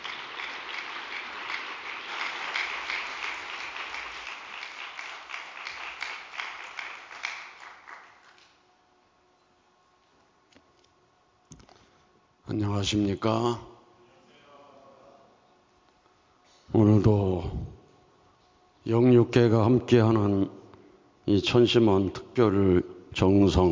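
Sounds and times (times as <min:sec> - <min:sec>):
audience applause: 0:00.0 - 0:08.6
speech: 0:12.5 - 0:13.7, 0:18.9 - 0:20.6, 0:21.3 - 0:23.7.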